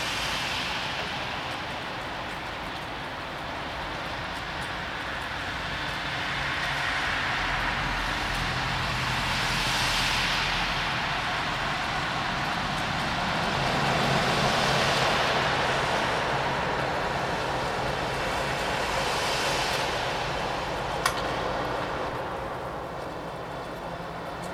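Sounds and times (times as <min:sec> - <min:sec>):
rain: 0:00.0 - 0:24.5.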